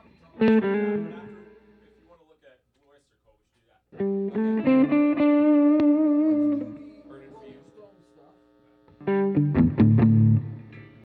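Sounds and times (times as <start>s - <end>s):
guitars playing: 0.4s - 1.8s, 4.0s - 7.1s, 9.0s - 11.0s.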